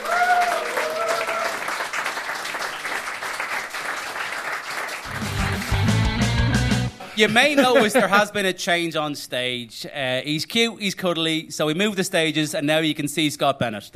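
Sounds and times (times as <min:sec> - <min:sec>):
round of applause: 0:00.0 - 0:06.2
laughter: 0:07.2 - 0:08.4
speech: 0:07.2 - 0:13.9.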